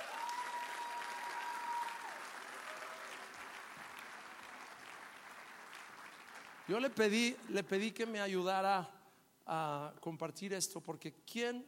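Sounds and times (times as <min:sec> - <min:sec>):
audience applause: 0:00.0 - 0:07.0
speech: 0:06.7 - 0:11.6.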